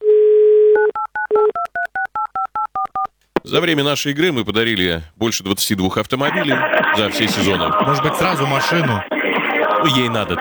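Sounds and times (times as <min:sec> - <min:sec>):
telephone dial tone: 0:00.0 - 0:01.5
speech: 0:03.4 - 0:09.1, 0:09.8 - 0:10.3
laughter: 0:06.2 - 0:10.3.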